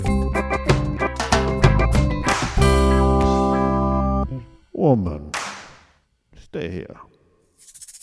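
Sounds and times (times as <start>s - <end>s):
reggae music: 0.0s - 5.9s.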